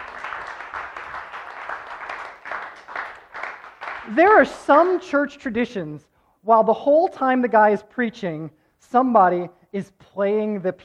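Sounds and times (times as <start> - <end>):
audience clapping: 0.0 - 5.1
speech: 4.1 - 10.8.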